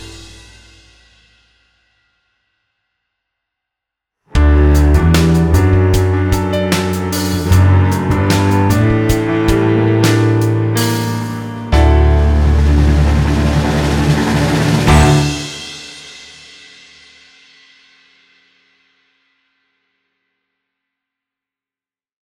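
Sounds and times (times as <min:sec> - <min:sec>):
accompaniment in D major: 0:00.0 - 0:01.0, 0:04.3 - 0:16.0.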